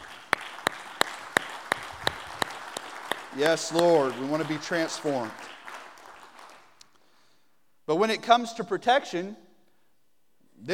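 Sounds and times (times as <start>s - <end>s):
audience clapping in unison: 0.0s - 7.3s
speech: 3.3s - 5.5s, 7.9s - 9.4s.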